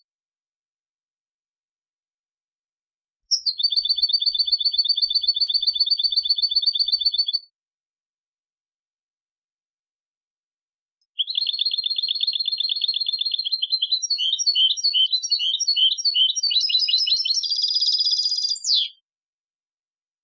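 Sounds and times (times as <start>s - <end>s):
European goldfinch Carduelis carduelis singing: 3.3s - 7.4s, 11.2s - 19.0s.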